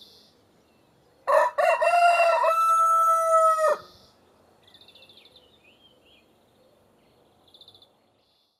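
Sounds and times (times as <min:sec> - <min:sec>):
rooster crowing with long sustained ending: 0:01.3 - 0:03.9.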